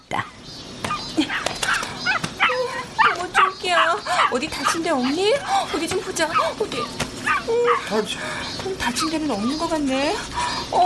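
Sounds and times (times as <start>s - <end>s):
speech: 0.1s - 0.4s, 4.3s - 10.8s
dog whimpering: 1.2s - 8.0s.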